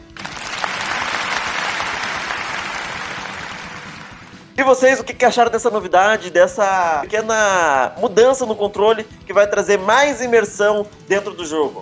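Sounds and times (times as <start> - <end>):
crowd applause: 0.0 - 4.5
speech: 4.6 - 11.8.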